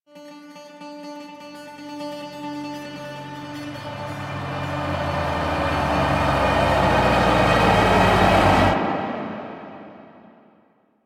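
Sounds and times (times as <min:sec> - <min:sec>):
horror jumpscare sting: 0:03.0 - 0:10.6.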